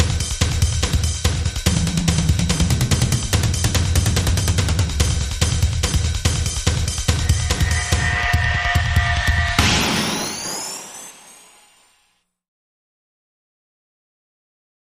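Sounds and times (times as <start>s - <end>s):
drums: 0.0s - 11.8s.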